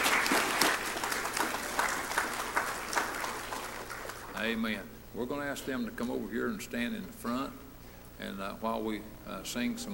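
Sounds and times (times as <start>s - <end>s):
audience applause: 0.0s - 4.4s
speech: 4.4s - 7.6s, 8.2s - 9.9s.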